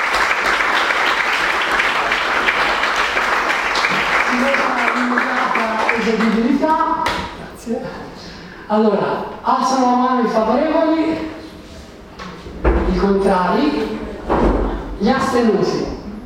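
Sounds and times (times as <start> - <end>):
audience applause: 0.0 - 6.5
speech: 6.1 - 6.9, 7.7 - 11.4, 13.0 - 14.0, 15.0 - 16.0.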